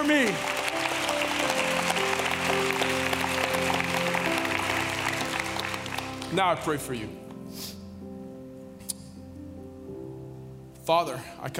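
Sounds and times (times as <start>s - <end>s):
speech: 0.0s - 0.6s, 6.3s - 7.7s, 10.9s - 11.5s
audience clapping: 0.0s - 7.0s.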